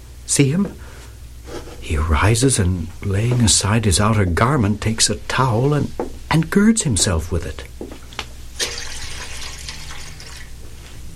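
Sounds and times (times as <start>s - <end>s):
speech: 0.3s - 0.8s, 1.9s - 8.0s
water splashing and trickling as feet are washed in a basin: 8.6s - 10.5s.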